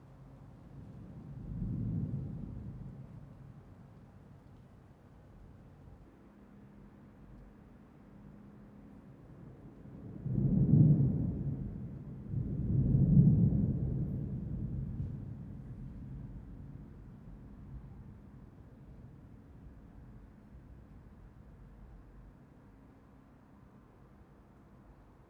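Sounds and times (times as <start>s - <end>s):
intense thunder: 1.0s - 3.2s, 10.1s - 18.0s.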